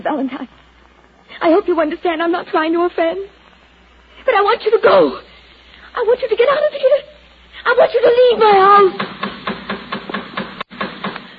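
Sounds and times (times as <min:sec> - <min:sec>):
speech: 0:00.0 - 0:00.7, 0:01.4 - 0:03.4, 0:04.2 - 0:05.3, 0:06.0 - 0:09.1
knocking on a door: 0:09.0 - 0:11.2.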